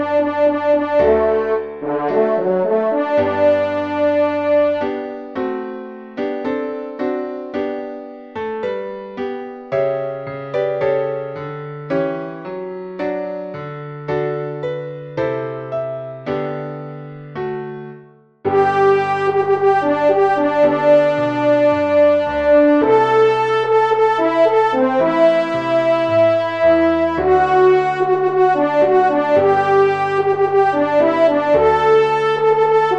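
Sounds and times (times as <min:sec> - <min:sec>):
trumpet: 0:00.0 - 0:05.0, 0:18.5 - 0:32.9
piano: 0:00.0 - 0:32.9.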